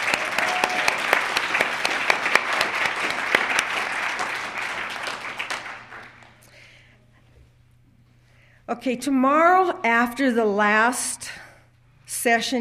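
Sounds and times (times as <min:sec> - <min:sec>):
round of applause: 0:00.0 - 0:06.5
speech: 0:08.7 - 0:11.4, 0:12.2 - 0:12.5.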